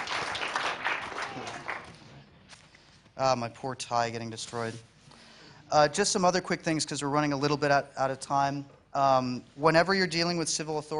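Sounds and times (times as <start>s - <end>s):
audience applause: 0.0s - 2.1s
speech: 3.2s - 4.9s, 5.7s - 10.9s.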